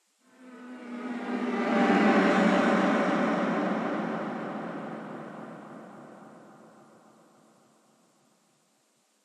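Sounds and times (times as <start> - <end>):
combat string music: 0.3 - 7.6.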